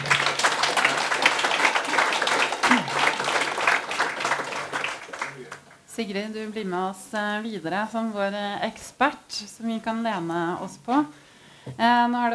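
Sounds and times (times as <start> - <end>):
audience applause: 0.0 - 5.8
speech: 6.0 - 12.3.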